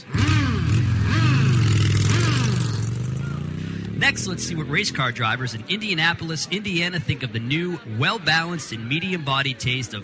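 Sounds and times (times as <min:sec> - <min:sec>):
motorcycle engine revving outside biker bar: 0:00.0 - 0:05.6
speech: 0:04.1 - 0:10.0.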